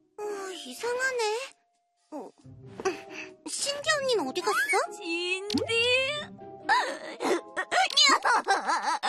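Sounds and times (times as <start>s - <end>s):
speech: 0.6s - 2.7s, 3.5s - 7.4s
person crying: 6.7s - 9.0s.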